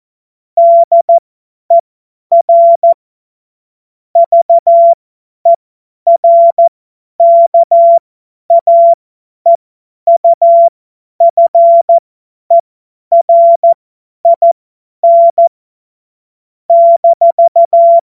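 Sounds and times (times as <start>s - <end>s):
CW Morse code beeps: 0.6s - 3.0s, 4.2s - 5.0s, 6.1s - 9.0s, 10.1s - 15.5s, 16.7s - 18.0s.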